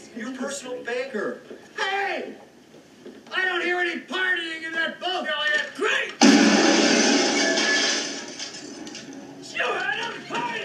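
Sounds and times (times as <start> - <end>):
speech: 0.2 - 2.5, 3.3 - 6.2
window glass being smashed: 6.2 - 9.1.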